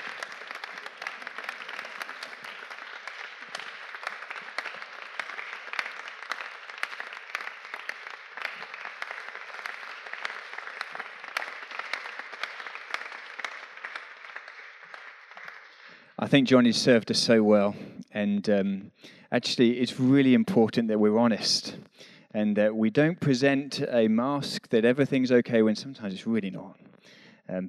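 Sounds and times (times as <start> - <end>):
applause: 0.0 - 17.7
speech: 16.3 - 27.6.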